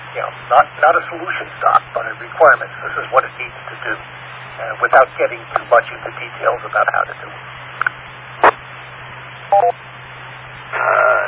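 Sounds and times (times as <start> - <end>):
radio hiss: 0.0 - 11.2
speech: 0.2 - 7.9
radio channel beep tones: 9.5 - 9.8.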